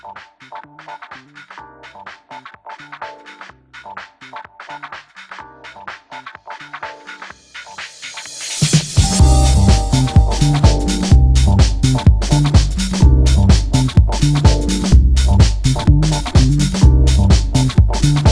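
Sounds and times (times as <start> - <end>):
deep house music: 9.0 - 18.2.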